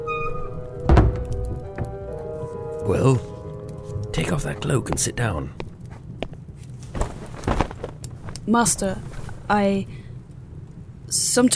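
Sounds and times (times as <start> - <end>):
door shutting: 0.0 - 2.2
speech: 2.9 - 3.4, 4.2 - 5.6, 8.5 - 10.0, 11.1 - 11.5.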